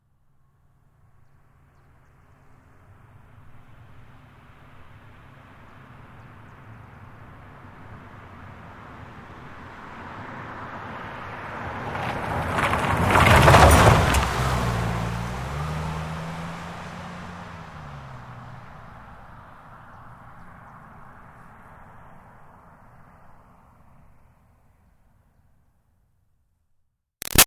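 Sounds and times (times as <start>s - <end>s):
Highlander car driving fast around a corner on dirt: 7.4s - 21.2s.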